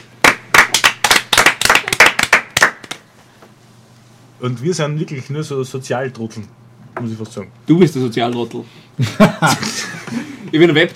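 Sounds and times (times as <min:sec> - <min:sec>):
small round of applause: 0:00.2 - 0:03.0
speech: 0:04.4 - 0:10.9
laughter: 0:09.0 - 0:10.5.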